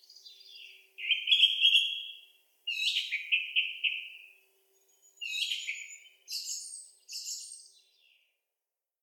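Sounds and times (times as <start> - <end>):
Turdus philomelos song thrush singing: 0.0 - 8.3.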